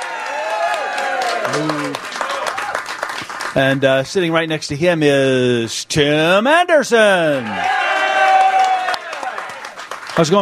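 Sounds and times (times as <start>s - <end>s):
crowd cheering at a Chicago White Sox fan event: 0.0s - 3.5s, 7.2s - 10.4s
crowd clapping at a Chicago White Sox fan event: 0.0s - 3.9s, 7.6s - 10.4s
speech: 1.5s - 2.1s, 3.6s - 7.8s, 10.2s - 10.4s.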